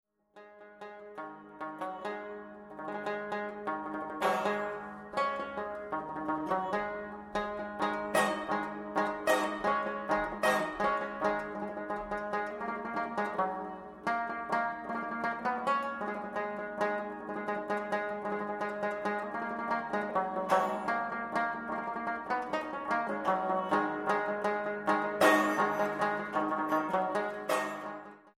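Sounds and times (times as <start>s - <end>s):
lute playing: 0.4s - 28.3s.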